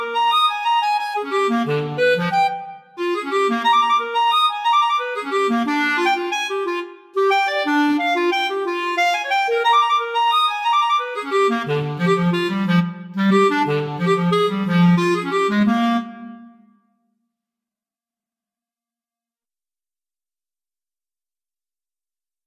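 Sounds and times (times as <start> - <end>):
solo clarinet piece: 0.0 - 16.9.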